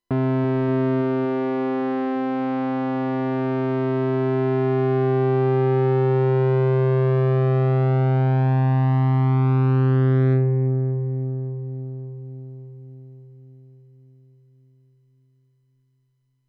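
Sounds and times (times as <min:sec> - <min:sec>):
Moog synthesizer: 0:00.1 - 0:13.2.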